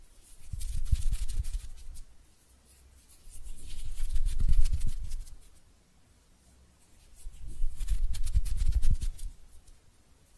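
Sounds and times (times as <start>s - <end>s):
hands rubbing together: 0.0s - 2.1s, 2.7s - 5.5s, 6.8s - 9.8s.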